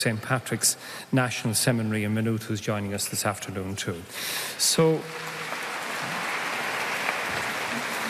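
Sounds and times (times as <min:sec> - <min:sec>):
speech: 0:00.0 - 0:06.2
audience applause for a priest: 0:04.6 - 0:08.0.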